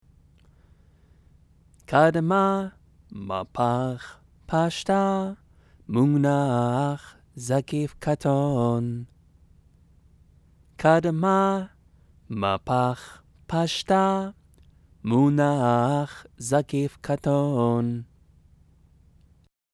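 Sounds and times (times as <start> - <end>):
scripture chanting: 1.8 - 9.2, 10.8 - 18.2.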